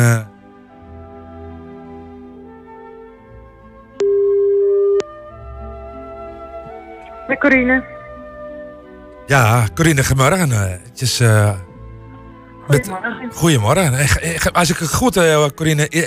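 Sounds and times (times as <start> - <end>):
speech: 0.0 - 0.3, 7.4 - 8.0, 9.3 - 11.7, 12.7 - 16.0
soft sustained music: 0.0 - 16.0
telephone ringback tone: 4.0 - 5.0.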